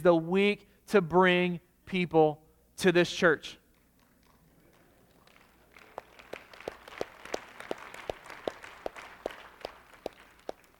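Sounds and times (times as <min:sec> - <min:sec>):
speech: 0:00.0 - 0:03.6
audience clapping in rhythm: 0:03.8 - 0:10.7.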